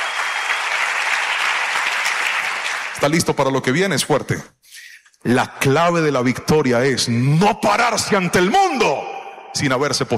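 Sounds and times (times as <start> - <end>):
crowd applauding: 0.0 - 3.0
speech: 3.0 - 4.6, 5.2 - 10.1.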